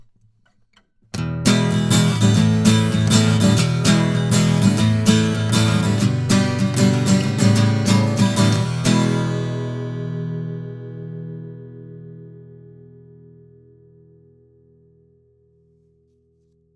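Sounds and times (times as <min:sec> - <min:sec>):
acoustic guitar with vintage steel tone: 0:01.1 - 0:15.6.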